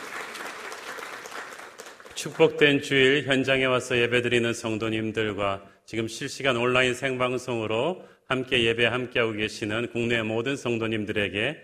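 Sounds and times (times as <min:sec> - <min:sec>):
audience applause: 0:00.0 - 0:02.6
speech: 0:02.2 - 0:11.6.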